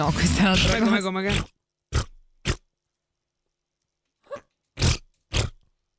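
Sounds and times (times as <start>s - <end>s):
speech: 0.0s - 1.6s
person imitating armpit farts: 0.6s - 2.7s, 4.8s - 5.7s.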